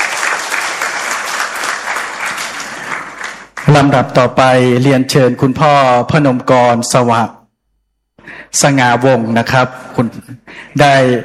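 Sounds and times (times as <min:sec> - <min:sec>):
audience applause: 0:00.0 - 0:03.8
speech: 0:03.7 - 0:07.4, 0:08.5 - 0:11.2.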